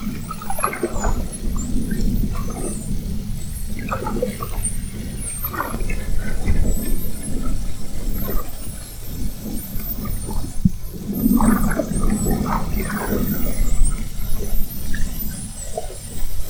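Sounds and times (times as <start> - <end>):
spinner dolphin whistles: 0.0 - 16.4.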